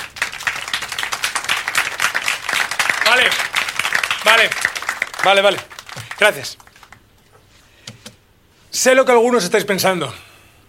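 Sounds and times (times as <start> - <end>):
welcoming applause for a new boss at a workplace meeting: 0.0 - 7.1
speech: 3.2 - 3.5, 4.2 - 6.6, 8.8 - 10.2.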